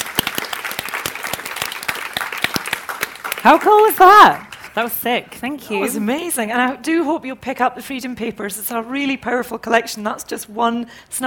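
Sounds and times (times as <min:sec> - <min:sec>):
audience applause: 0:00.0 - 0:04.8
speech: 0:03.4 - 0:11.2.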